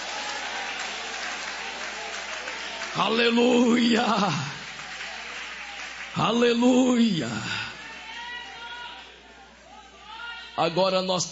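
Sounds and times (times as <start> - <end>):
audience applauding: 0.0 - 8.0
speech: 3.0 - 4.6, 6.2 - 7.6, 10.6 - 11.3.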